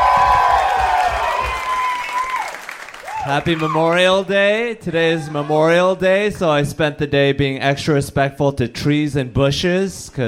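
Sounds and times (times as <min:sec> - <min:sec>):
audience applause: 0:00.0 - 0:03.9
audience cheering: 0:00.0 - 0:04.2, 0:05.0 - 0:05.8
speech: 0:03.3 - 0:10.2.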